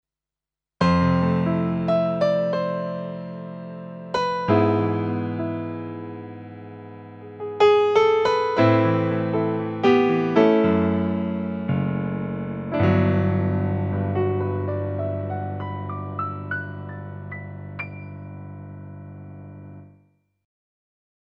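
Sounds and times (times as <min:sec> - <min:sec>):
Yamaha P 125 piano: 0:00.8 - 0:20.0.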